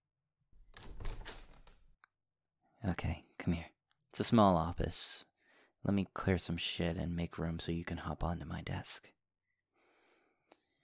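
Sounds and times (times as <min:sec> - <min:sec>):
office door handle and latch rattling: 0:00.6 - 0:01.8
speech: 0:02.8 - 0:09.2.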